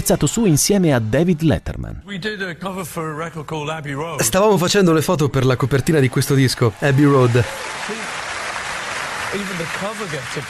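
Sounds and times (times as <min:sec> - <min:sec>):
speech: 0:00.1 - 0:08.1, 0:09.3 - 0:10.4
audience applause: 0:06.0 - 0:10.4.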